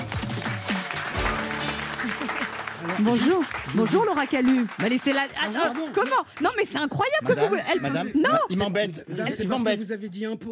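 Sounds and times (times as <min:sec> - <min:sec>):
audience applause for a comedian at a live show: 0:00.0 - 0:07.2
speech: 0:03.0 - 0:10.5.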